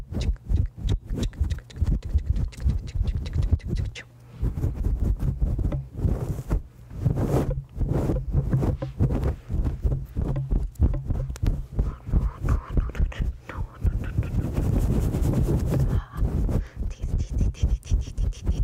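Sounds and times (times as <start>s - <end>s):
head scratching on different mic covers: 0.2s - 18.6s.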